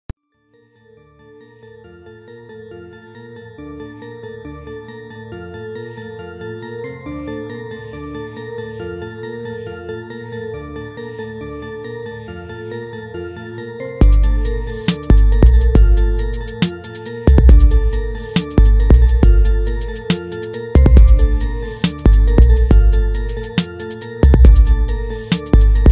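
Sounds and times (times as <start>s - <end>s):
rap beat: 14.0s - 25.9s.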